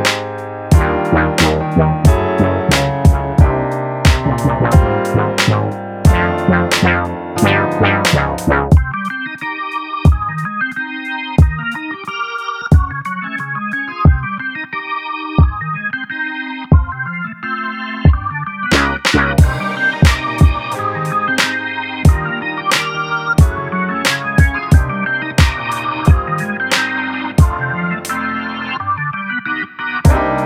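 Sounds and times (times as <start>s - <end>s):
new beat electronic beat: 0.0s - 9.4s, 10.0s - 12.1s, 12.7s - 14.4s, 15.4s - 15.6s, 18.1s - 28.3s, 30.1s - 30.4s.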